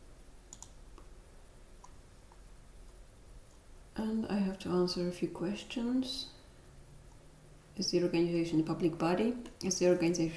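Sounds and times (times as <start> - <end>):
computer mouse clicking while filling in an online application form: 0.5 - 1.1, 1.8 - 2.4
speech: 4.0 - 6.4, 7.8 - 10.3.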